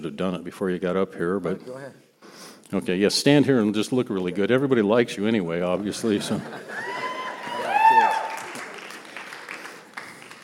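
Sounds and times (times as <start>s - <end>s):
speech: 0.1s - 6.9s
laughter: 5.7s - 8.8s
high-pitched cheering voices: 6.7s - 9.0s
audience clapping: 6.8s - 10.4s.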